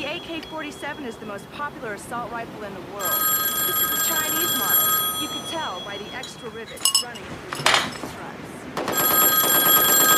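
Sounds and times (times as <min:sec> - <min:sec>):
telephone bell ringing in a film scene: 0:00.0 - 0:01.4, 0:03.0 - 0:07.2, 0:08.9 - 0:10.1
noise: 0:00.0 - 0:10.1
speech: 0:00.2 - 0:08.6.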